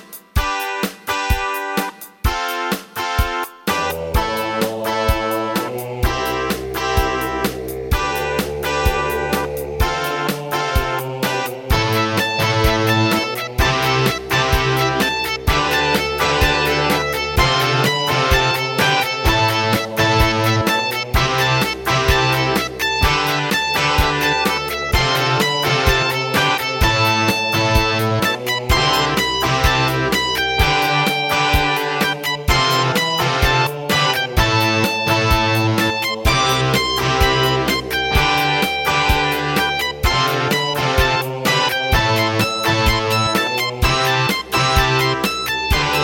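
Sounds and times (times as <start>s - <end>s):
Roland SC-88 sound module music: 0.4s - 46.0s.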